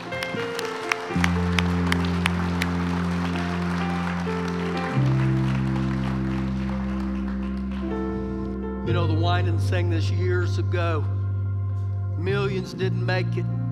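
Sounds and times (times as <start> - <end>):
audience clapping: 0.0 - 8.7
speech: 9.2 - 11.2, 12.2 - 13.6.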